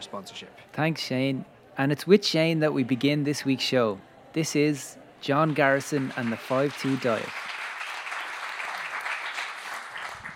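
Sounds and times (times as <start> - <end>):
speech: 0.1 - 7.4
audience hand claps: 5.3 - 10.3.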